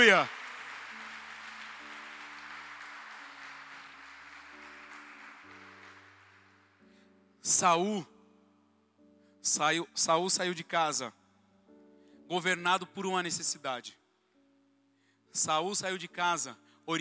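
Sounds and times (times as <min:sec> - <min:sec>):
speech: 0:00.0 - 0:00.4, 0:07.4 - 0:08.1, 0:09.4 - 0:11.2, 0:12.3 - 0:14.0, 0:15.3 - 0:17.0
audience applause: 0:00.0 - 0:06.8.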